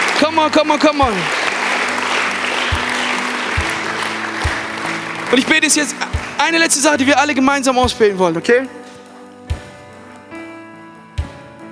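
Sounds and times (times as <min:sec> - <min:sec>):
audience applause: 0:00.0 - 0:07.1
speech: 0:00.2 - 0:01.4, 0:05.3 - 0:08.8.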